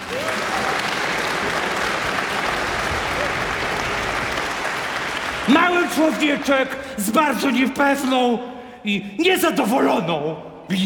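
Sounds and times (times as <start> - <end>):
loud audience applause: 0.0 - 6.8
speech: 5.5 - 10.8.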